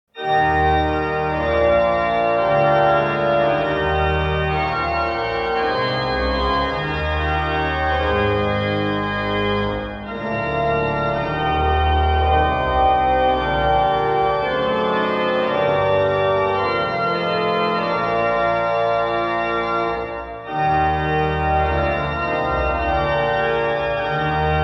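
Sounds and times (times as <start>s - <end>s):
chorale prelude music: 0.2s - 24.6s.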